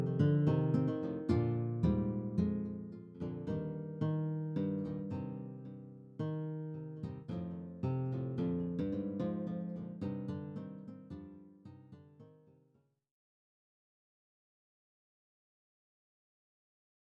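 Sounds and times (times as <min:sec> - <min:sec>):
classical guitar: 0:00.0 - 0:12.8.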